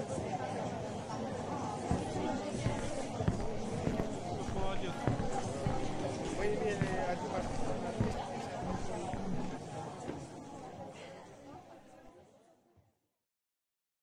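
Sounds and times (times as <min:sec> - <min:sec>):
theater foyer ambience: 0:00.0 - 0:12.1.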